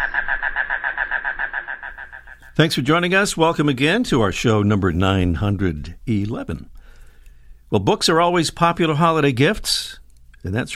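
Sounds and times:
mangrove cuckoo Coccyzus minor calling: 0.0 - 2.6
speech: 2.6 - 6.7, 7.7 - 10.7.

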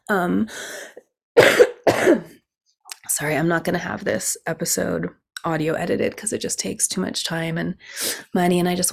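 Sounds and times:
speech: 0.1 - 2.3, 3.1 - 8.9
person coughing and clearing their throat: 1.4 - 2.4.

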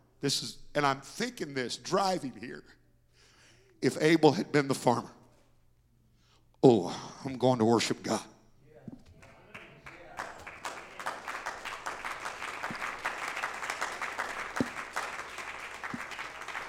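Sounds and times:
speech: 0.2 - 2.8, 3.8 - 5.2, 6.6 - 8.3
audience clapping: 9.0 - 16.6.

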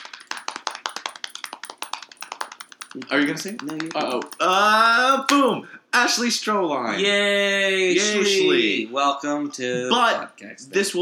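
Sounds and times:
mock drum roll tapped out by hand: 0.0 - 5.6
speech: 2.9 - 10.9.

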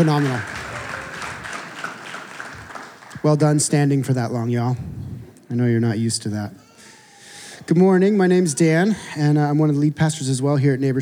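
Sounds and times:
speech: 0.0 - 0.6, 3.2 - 6.6, 7.7 - 11.0
applause: 0.0 - 3.7.

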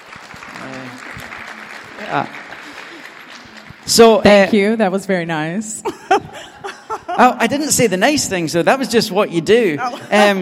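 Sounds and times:
crowd clapping: 0.0 - 4.6
speech: 2.0 - 2.4, 3.9 - 6.0, 7.2 - 10.4
laughter: 5.8 - 7.8, 9.8 - 10.4.

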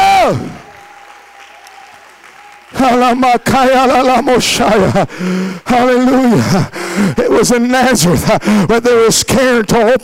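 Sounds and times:
audience clapping: 0.0 - 5.4
speech: 2.8 - 10.0.

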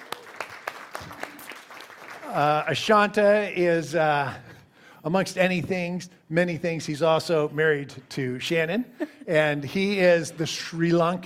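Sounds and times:
church congregation clapping to welcome a scripture reader: 0.0 - 2.4
speech: 2.3 - 11.2.

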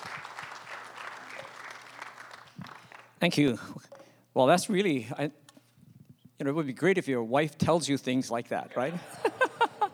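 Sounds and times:
church audience applauding to welcome a pastor: 0.0 - 3.2
speech: 3.2 - 5.4, 6.4 - 9.4
laughter: 8.8 - 9.9.

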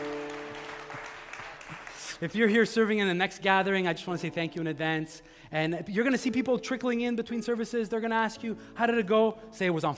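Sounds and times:
audience clapping: 0.0 - 2.4
speech: 2.2 - 9.9.

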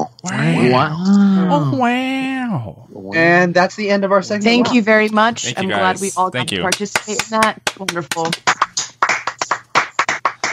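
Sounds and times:
speech: 0.2 - 8.8
hands clapping: 6.4 - 10.5.

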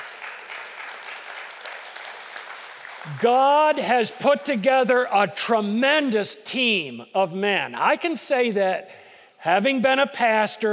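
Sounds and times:
audience clapping: 0.0 - 4.5
speech: 3.0 - 10.7.

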